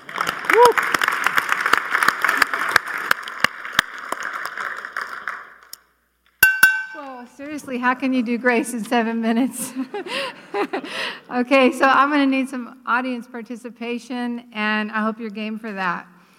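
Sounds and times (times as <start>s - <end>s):
crowd cheering: 0.0s - 4.7s
crowd applauding: 0.0s - 5.8s
speech: 7.6s - 16.1s
laughter: 8.5s - 11.3s.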